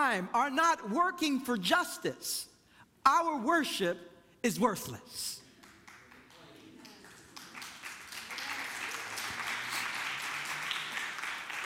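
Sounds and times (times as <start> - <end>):
speech: 0.0 - 5.4
audience clapping: 5.4 - 11.6.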